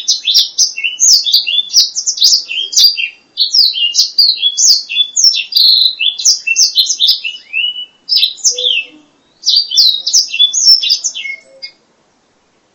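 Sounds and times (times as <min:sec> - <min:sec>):
black-throated laughingthrush whistled song: 0:00.0 - 0:11.8.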